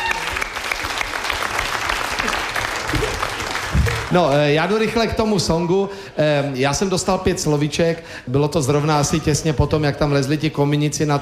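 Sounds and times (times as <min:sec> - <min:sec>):
audience applause: 0:00.0 - 0:04.9
speech: 0:04.1 - 0:11.2.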